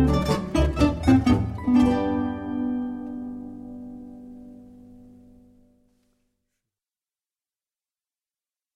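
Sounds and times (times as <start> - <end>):
polka music: 0.0 - 4.0.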